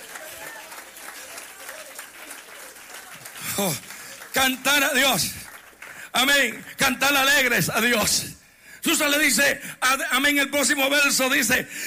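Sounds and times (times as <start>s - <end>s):
audience applauding: 0.0s - 6.6s
speech: 3.6s - 5.4s, 6.2s - 11.8s.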